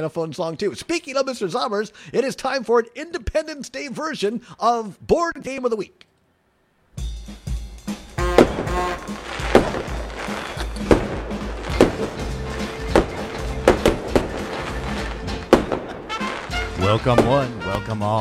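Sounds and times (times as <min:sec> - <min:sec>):
speech: 0:00.0 - 0:06.1, 0:16.8 - 0:18.1
fireworks going off: 0:07.9 - 0:18.1.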